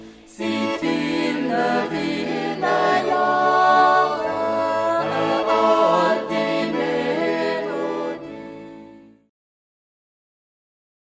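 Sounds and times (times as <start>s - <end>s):
jutz yodeling: 0.3s - 9.0s.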